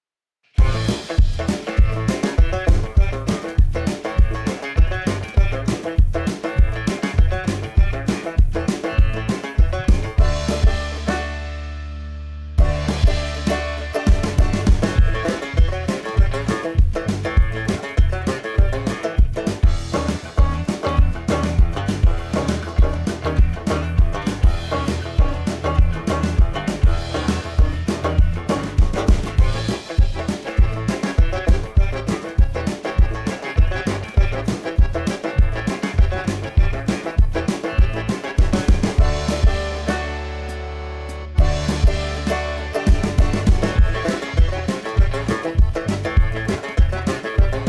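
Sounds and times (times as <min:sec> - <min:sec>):
country style riff: 0:00.6 - 0:47.6.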